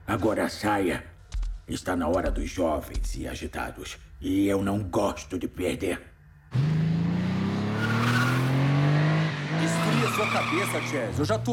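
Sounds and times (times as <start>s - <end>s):
speech: 0.1s - 1.1s, 1.7s - 6.8s, 10.1s - 11.5s
car engine revving in a dubbed animated cartoon: 6.5s - 11.5s
tire squeal: 7.4s - 11.3s.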